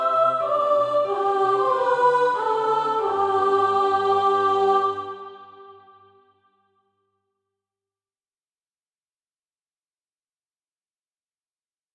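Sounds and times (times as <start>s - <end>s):
soprano singing practice music: 0.0s - 6.2s.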